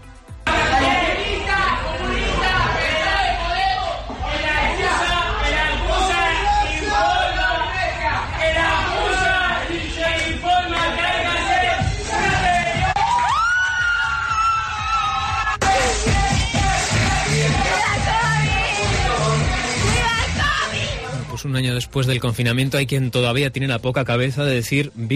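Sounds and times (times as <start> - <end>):
dense crowd chatter in a cocktail bar: 0.5 - 12.9, 15.6 - 21.5
partygoers shouting and whooping in a cocktail bar on a Saturday night: 0.5 - 21.2
speech: 21.4 - 25.1.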